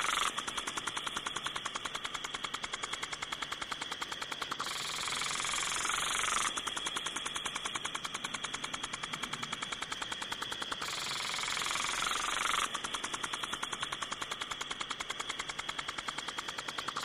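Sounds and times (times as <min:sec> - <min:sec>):
sprinkler spraying: 0:00.0 - 0:17.0.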